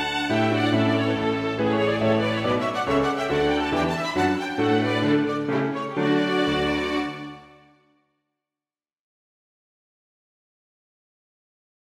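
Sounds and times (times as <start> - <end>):
minuet for two violins, cello and piano: 0.0 - 7.6.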